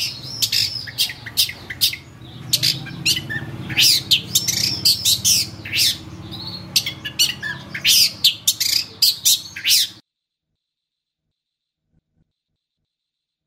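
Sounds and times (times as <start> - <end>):
long-tailed shrike song of harsh scratchy squawks: 0.0 - 10.0.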